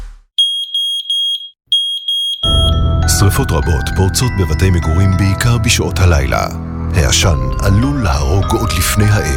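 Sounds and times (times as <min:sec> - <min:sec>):
smoke detector alarm beeping: 0:00.4 - 0:02.9
speech: 0:03.4 - 0:09.3.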